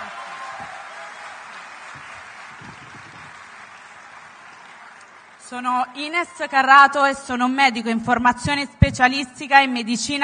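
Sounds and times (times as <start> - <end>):
crowd applauding: 0.0 - 5.5
speech: 5.5 - 10.2.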